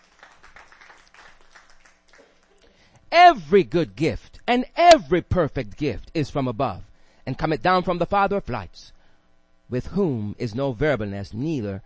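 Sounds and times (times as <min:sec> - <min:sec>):
audience clapping: 0:00.0 - 0:02.8
speech: 0:03.1 - 0:09.0, 0:09.7 - 0:11.8.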